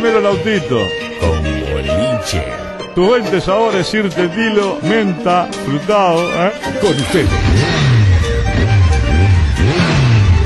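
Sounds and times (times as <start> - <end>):
speech: 0.0 - 1.5, 2.2 - 7.8
motorcycle engine revving: 6.9 - 10.4.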